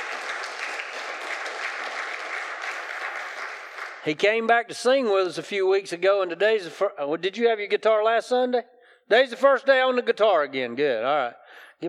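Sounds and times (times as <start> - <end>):
audience applauding: 0.0 - 4.2
speech: 4.0 - 11.8.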